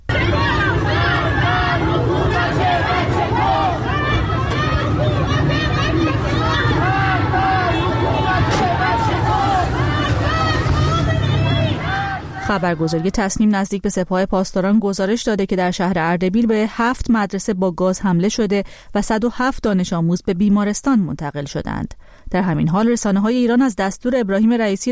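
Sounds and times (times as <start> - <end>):
crowd of parents chanting protest slogans: 0.0 - 13.2
speech: 12.5 - 24.9.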